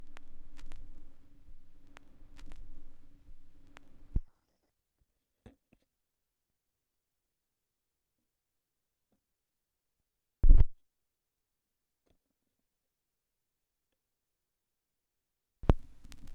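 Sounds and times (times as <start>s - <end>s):
vinyl record noise: 0.0s - 4.2s, 15.6s - 16.3s.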